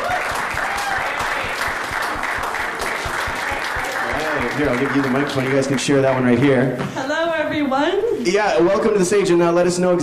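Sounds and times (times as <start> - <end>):
audience applause at a film competition event: 0.0 - 6.5
speech: 4.6 - 10.0.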